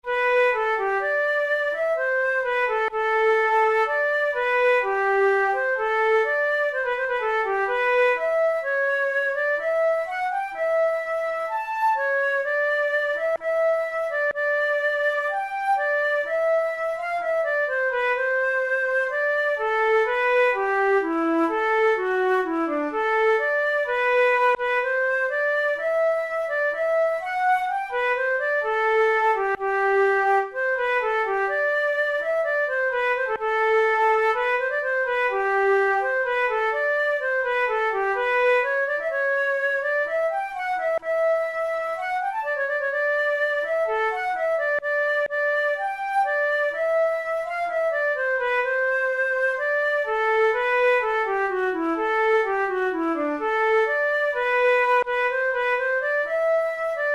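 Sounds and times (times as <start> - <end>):
flute playing a gavotte: 0.0 - 57.1.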